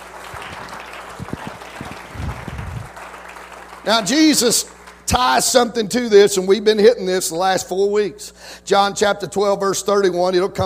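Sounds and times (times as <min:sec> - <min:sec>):
audience hand clapping: 0:00.0 - 0:05.2
speech: 0:03.9 - 0:10.6.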